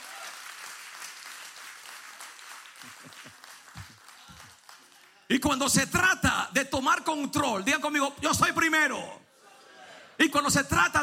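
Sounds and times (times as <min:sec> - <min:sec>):
audience applause: 0:00.0 - 0:05.3
speech: 0:05.3 - 0:09.2, 0:10.2 - 0:11.0.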